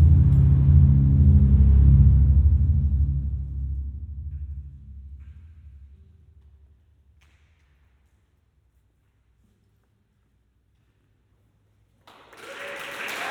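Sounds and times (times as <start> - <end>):
deep rumbling drone of sound art in a concrete munitions magazine: 0.0 - 6.9.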